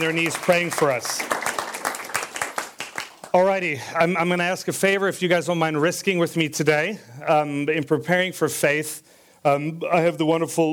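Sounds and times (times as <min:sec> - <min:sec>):
speech: 0:00.0 - 0:01.4, 0:03.3 - 0:10.7
audience applause: 0:00.0 - 0:03.4.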